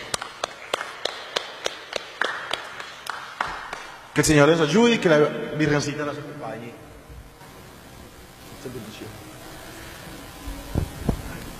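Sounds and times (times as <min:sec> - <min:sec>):
audience applauding: 0:00.0 - 0:04.4
speech: 0:04.2 - 0:06.9, 0:08.6 - 0:09.3.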